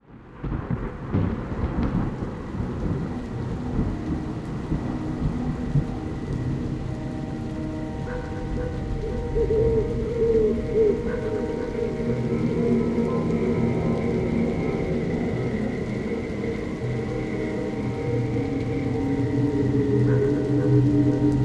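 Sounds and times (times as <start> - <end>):
thunderstorm: 0.0 - 21.4.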